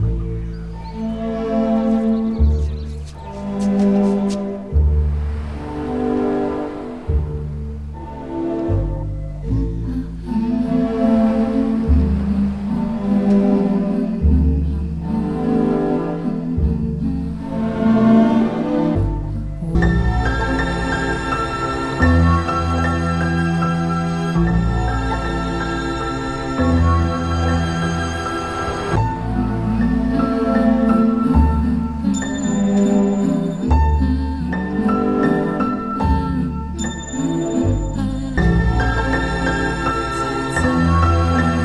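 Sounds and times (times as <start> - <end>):
sad string music loop: 0.0 - 41.6.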